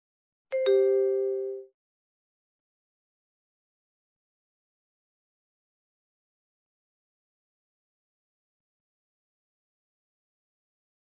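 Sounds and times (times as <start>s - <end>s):
two-note prompt chime for entering card information: 0.6s - 1.7s.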